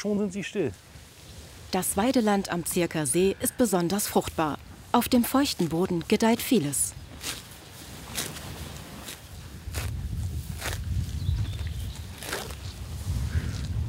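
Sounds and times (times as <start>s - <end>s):
speech: 0.0s - 1.0s, 1.7s - 7.4s
cows tearing off grass while grazing: 7.1s - 13.8s.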